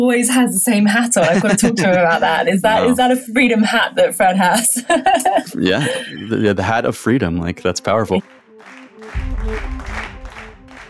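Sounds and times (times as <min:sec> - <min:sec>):
speech: 0:00.0 - 0:08.4
laughter: 0:00.8 - 0:03.2, 0:04.4 - 0:07.3
group clapping in sync: 0:08.2 - 0:10.8.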